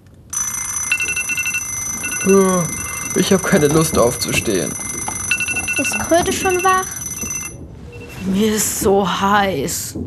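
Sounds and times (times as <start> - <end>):
alarm clocks ringing: 0.3 - 8.2
speech: 2.2 - 4.8, 5.8 - 7.4, 8.2 - 10.0.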